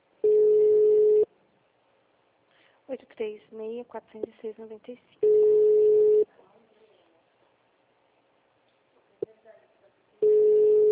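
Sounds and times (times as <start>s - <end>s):
ringback tone beeps of an unanswered phone call to Flora Rica: 0.2s - 1.3s, 5.2s - 6.2s, 10.2s - 10.9s
speech: 3.2s - 5.3s.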